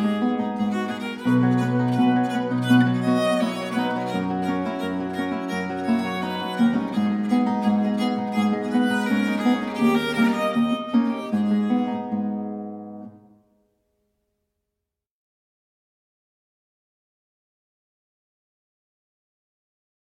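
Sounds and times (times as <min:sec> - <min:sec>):
arpeggione moderato classical piece in A minor: 0:00.0 - 0:13.4.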